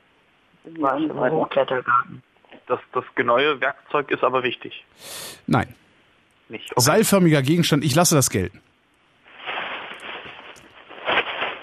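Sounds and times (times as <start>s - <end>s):
speech: 0.6s - 5.8s, 6.5s - 8.7s
crackly rustling: 8.9s - 11.6s.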